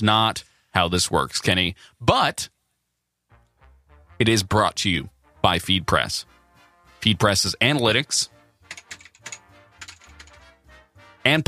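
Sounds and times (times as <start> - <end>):
speech: 0.0 - 2.6, 4.2 - 6.4, 7.0 - 8.4, 11.2 - 11.4
faint typing on a computer keyboard: 8.6 - 10.5.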